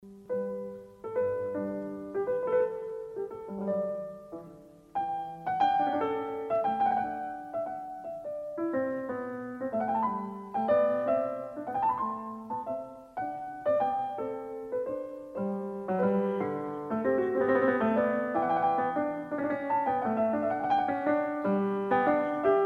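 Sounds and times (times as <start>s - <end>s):
baroque keyboard variations: 0.0s - 22.6s.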